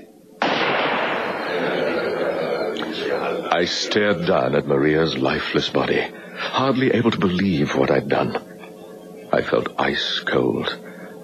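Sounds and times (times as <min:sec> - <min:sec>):
gunshot in a dramatized killing: 0:00.4 - 0:01.5
laughter: 0:00.8 - 0:06.9
speech: 0:03.0 - 0:08.5, 0:09.4 - 0:10.8.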